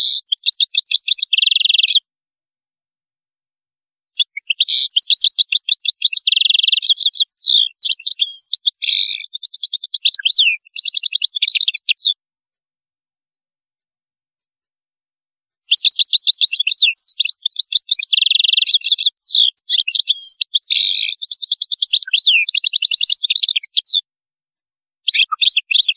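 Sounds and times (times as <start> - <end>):
European goldfinch song: 0.0 - 2.1, 4.1 - 12.2, 15.7 - 24.0, 25.0 - 25.9.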